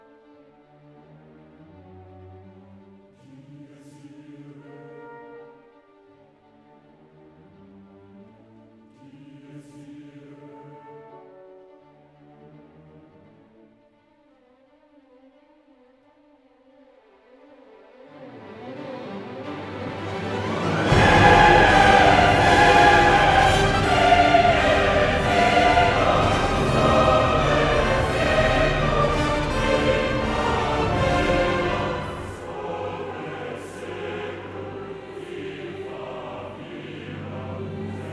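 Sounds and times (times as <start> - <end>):
chorus singing: 3.2 - 5.4, 9.0 - 11.1, 18.4 - 38.1
mezzo-soprano singing: 20.1 - 38.1.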